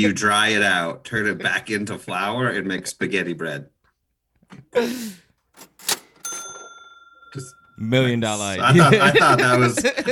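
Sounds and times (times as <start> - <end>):
speech: 0.0 - 3.8, 4.5 - 6.0, 7.3 - 10.1
cash register sound effect: 5.5 - 7.8
laughter: 8.6 - 10.1.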